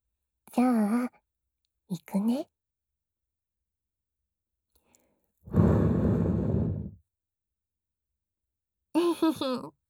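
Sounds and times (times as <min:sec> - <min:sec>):
speech: 0:01.9 - 0:02.5, 0:09.2 - 0:09.8
gentle breath blown into the ear during ear-cleaning roleplay: 0:05.5 - 0:07.0.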